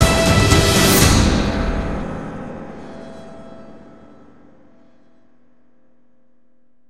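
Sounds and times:
orchestral stinger tag: 0.0 - 4.0.

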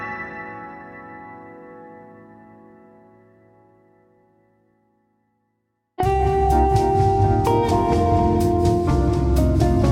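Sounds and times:
latin jazz: 6.0 - 9.8.

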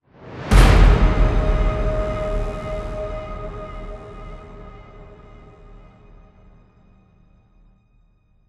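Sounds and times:
victory music sting: 0.5 - 6.2.

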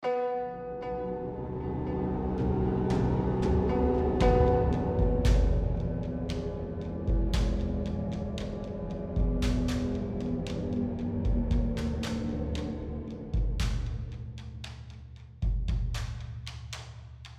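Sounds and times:
tension music block: 0.1 - 16.2.

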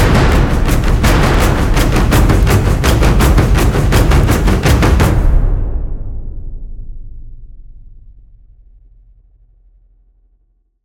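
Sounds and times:
low intensity action percussion loop: 0.0 - 5.4.

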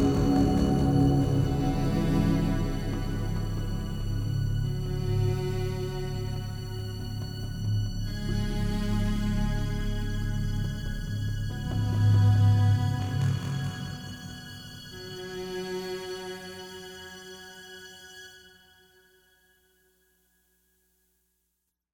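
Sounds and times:
dark calm ambience: 0.0 - 16.4.

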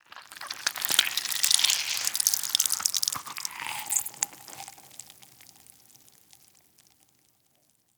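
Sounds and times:
person eating: 0.1 - 5.7.

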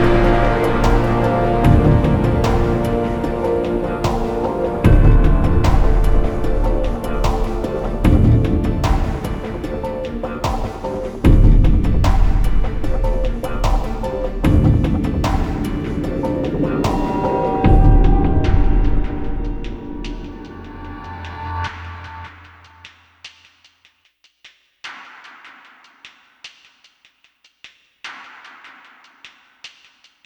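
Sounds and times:
loading music: 0.0 - 22.8.

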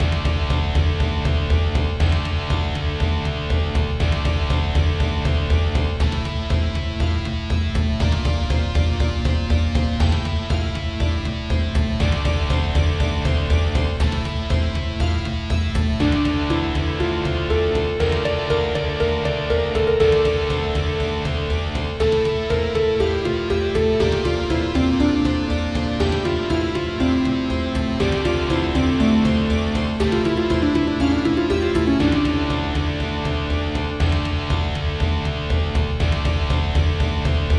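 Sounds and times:
ominous music: 0.0 - 37.5.

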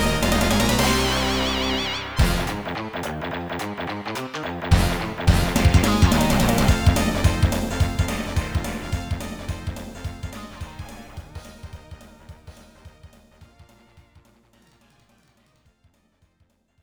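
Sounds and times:
blues music: 0.0 - 13.4.

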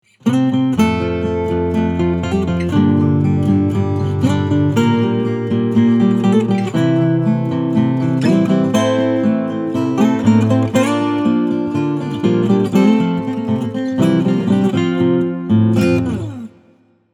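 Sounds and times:
acoustic title theme music: 0.1 - 17.0.

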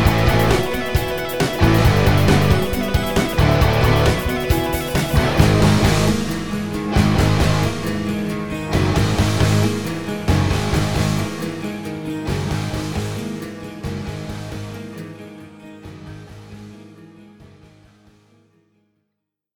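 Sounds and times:
rock music loop: 0.0 - 14.7.

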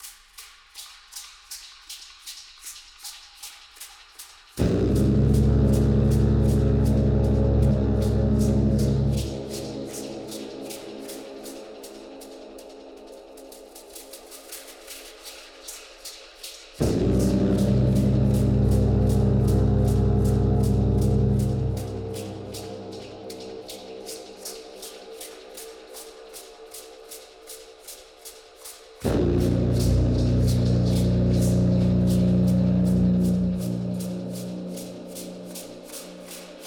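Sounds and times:
hard danger combat fight music: 4.6 - 10.7, 16.8 - 23.8, 29.0 - 36.6.

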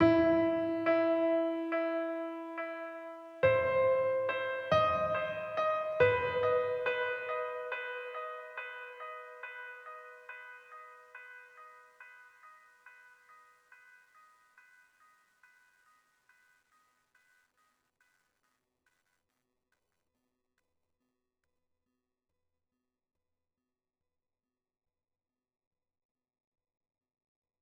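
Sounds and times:
piano one shot: 0.0 - 11.4.

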